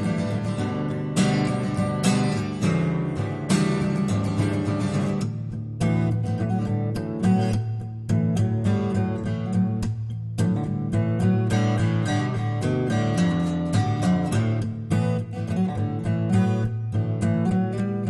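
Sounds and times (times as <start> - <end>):
guitar strumming: 0.0 - 18.0.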